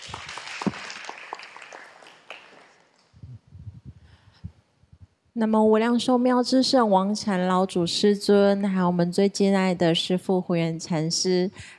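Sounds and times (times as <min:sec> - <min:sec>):
audience applause: 0:00.0 - 0:02.9
speech: 0:05.4 - 0:11.7.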